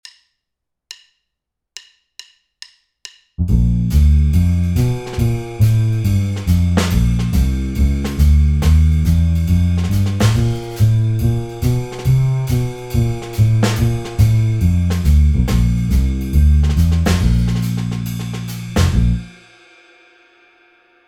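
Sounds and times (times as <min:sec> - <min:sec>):
Bbmaj7 backing track without piano: 0:03.4 - 0:19.3.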